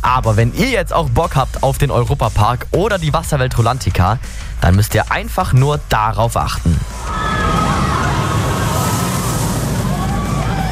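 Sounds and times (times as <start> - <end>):
speech: 0.1 - 7.3
roller coaster ride sound effect: 6.8 - 10.7.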